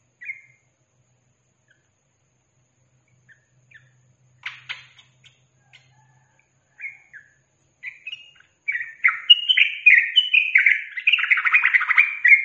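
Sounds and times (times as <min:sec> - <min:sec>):
yellow-vented bulbul singing: 0:00.0 - 0:00.7, 0:03.0 - 0:12.4.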